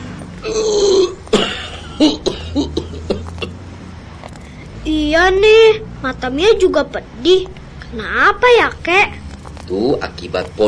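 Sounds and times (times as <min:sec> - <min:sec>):
speech: 0:00.4 - 0:00.9, 0:02.0 - 0:02.8, 0:05.1 - 0:10.6
old man coughing: 0:00.5 - 0:03.6.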